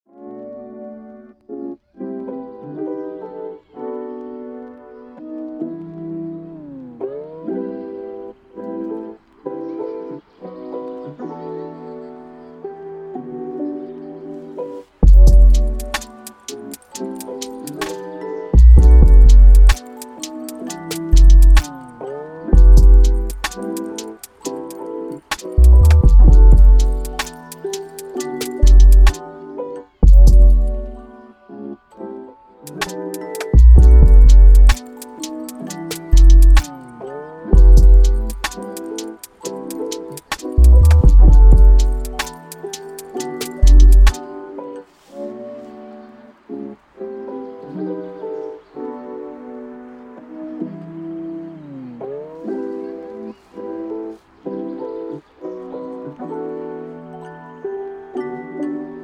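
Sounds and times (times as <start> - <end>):
hip hop beat: 15.0 - 31.1, 32.6 - 44.4.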